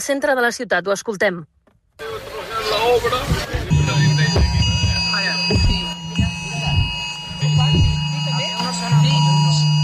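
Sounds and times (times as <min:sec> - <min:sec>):
speech: 0:00.0 - 0:03.6
crowd murmuring: 0:02.0 - 0:09.7
mobile phone emergency alert tones: 0:03.6 - 0:09.8.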